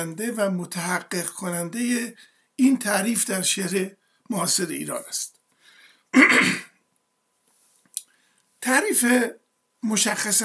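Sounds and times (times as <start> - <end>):
speech: 0.0 - 5.4, 6.1 - 6.7, 8.6 - 10.4
throat clearing from a person with an allergy: 6.1 - 6.8.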